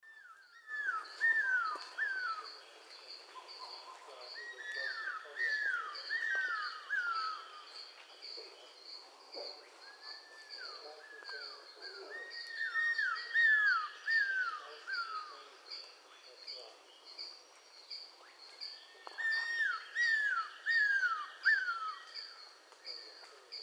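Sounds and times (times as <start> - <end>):
cuckoo-roller repeating clear downslurred whistles: 0.1 - 2.6, 3.4 - 7.8, 9.8 - 15.5, 18.7 - 23.2.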